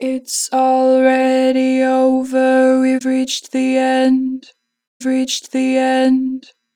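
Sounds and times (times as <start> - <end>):
Harmor synthesized vocals: 0.0 - 6.5.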